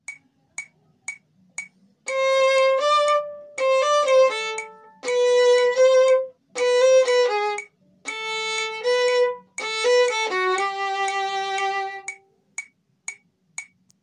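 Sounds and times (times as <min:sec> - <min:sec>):
metronome clicking: 0:00.0 - 0:14.0.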